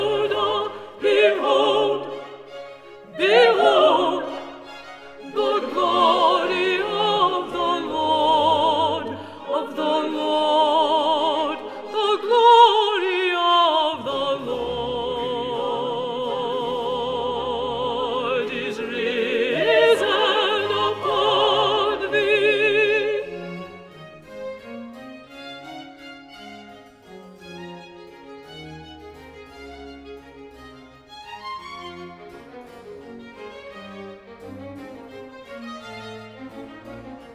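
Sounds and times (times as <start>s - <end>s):
contralto voices singing: 0.0s - 23.8s.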